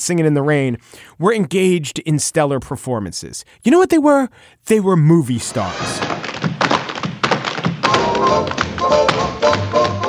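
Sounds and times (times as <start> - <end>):
speech: 0.0 - 6.3
tap dancing footwork: 5.9 - 10.0.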